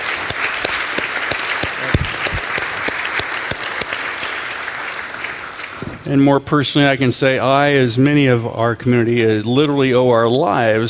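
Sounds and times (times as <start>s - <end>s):
round of applause: 0.0s - 6.2s
speech: 6.1s - 10.8s.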